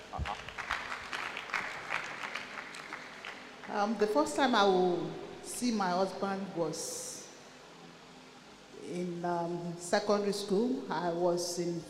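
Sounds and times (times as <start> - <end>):
audience applause: 0.2 - 3.7
speech: 3.7 - 7.1, 8.9 - 11.8.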